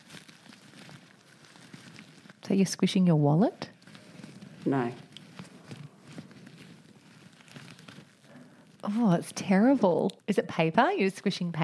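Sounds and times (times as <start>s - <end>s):
rubber exercise band being rubbed: 0.0s - 9.8s
speech: 2.5s - 3.7s, 4.6s - 5.1s, 8.9s - 11.6s.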